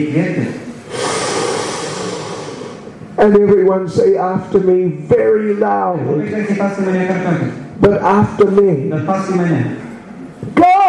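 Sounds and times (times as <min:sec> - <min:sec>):
speech: 0:00.0 - 0:00.6, 0:03.2 - 0:09.8
audience taking a deep breath together at an exercise in a talk: 0:00.7 - 0:03.0.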